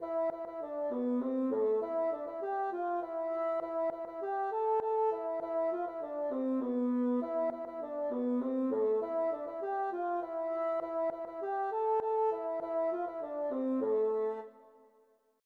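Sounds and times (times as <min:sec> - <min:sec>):
Breton hanterdro folk dance music: 0:00.0 - 0:14.5.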